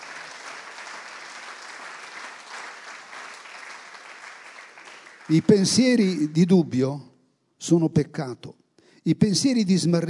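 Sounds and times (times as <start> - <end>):
audience applause: 0.0 - 6.2
speech: 5.3 - 10.0.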